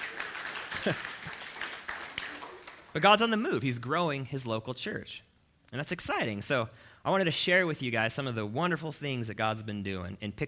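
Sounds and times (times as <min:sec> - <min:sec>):
church congregation applauding during a service: 0:00.0 - 0:03.1
speech: 0:00.8 - 0:01.1, 0:02.9 - 0:10.4.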